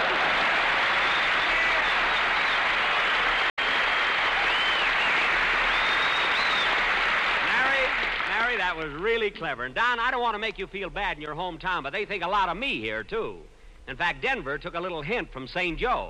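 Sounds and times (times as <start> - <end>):
audience applause: 0.0 - 8.7
speech: 9.3 - 16.0.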